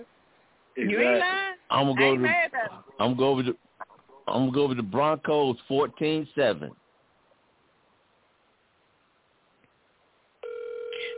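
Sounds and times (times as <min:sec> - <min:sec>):
speech: 0:00.8 - 0:03.7, 0:04.3 - 0:06.8
phone ringing: 0:10.4 - 0:11.1.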